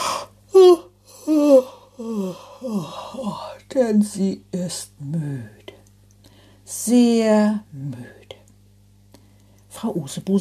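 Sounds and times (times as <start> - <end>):
yawn: 0.0 - 3.6
speech: 3.8 - 5.6, 6.7 - 8.2, 9.8 - 10.4.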